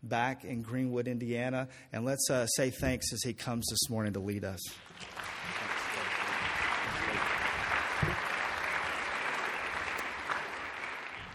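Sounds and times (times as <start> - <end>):
speech: 0.0 - 5.8
audience applause: 4.8 - 11.3.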